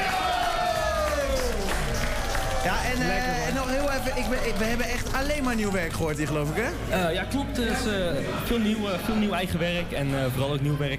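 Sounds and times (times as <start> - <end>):
crowd applause and cheering: 0.0 - 6.0
speech: 2.6 - 10.9.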